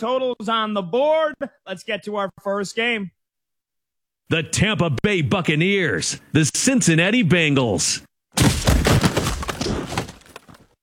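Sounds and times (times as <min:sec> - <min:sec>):
speech: 0:00.0 - 0:03.2, 0:04.3 - 0:08.5
football pads crunching: 0:08.4 - 0:10.8.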